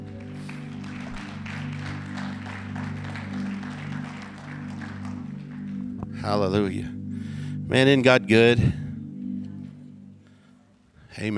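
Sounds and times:
audience clapping: 0.0 - 6.3
sustained low organ chords: 0.0 - 11.3
speech: 6.2 - 7.0, 7.7 - 8.8.

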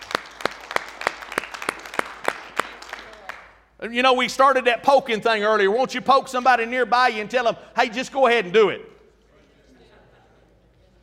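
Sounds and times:
scattered applause: 0.0 - 3.7
audience clapping in unison: 0.0 - 3.8
speech: 3.8 - 8.9
laughter: 9.4 - 11.0.

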